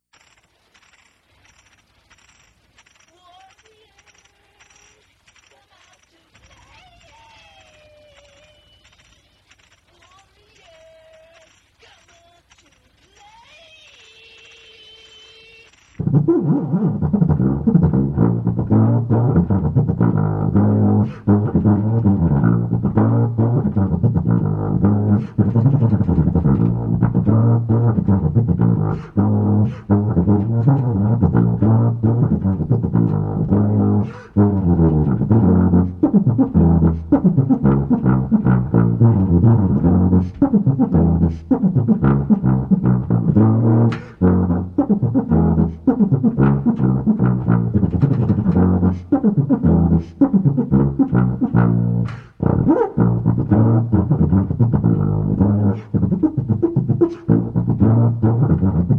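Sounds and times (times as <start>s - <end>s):
tuba solo: 16.0s - 58.9s.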